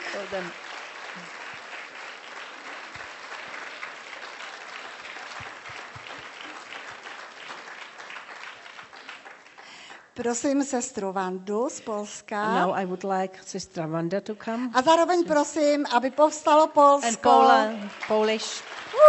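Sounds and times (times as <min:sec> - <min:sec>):
audience applause: 0:00.0 - 0:10.0, 0:17.2 - 0:19.0
speech: 0:00.2 - 0:01.4, 0:10.2 - 0:19.0.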